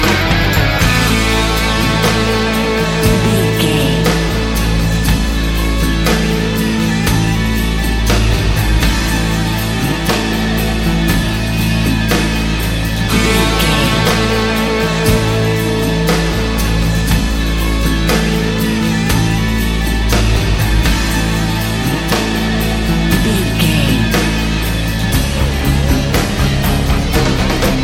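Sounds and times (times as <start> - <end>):
sports rock music: 0.0 - 27.8.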